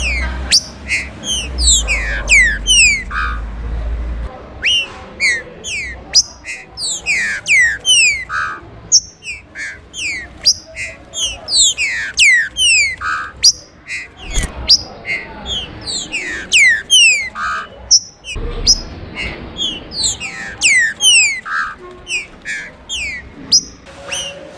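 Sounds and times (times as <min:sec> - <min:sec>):
Green-winged Saltator song: 0:00.0 - 0:03.4, 0:04.6 - 0:24.4.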